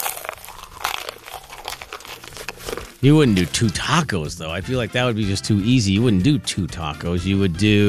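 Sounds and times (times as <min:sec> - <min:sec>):
someone biting into a fried chicken sandwich: 0:00.0 - 0:04.0
speech: 0:03.0 - 0:07.8.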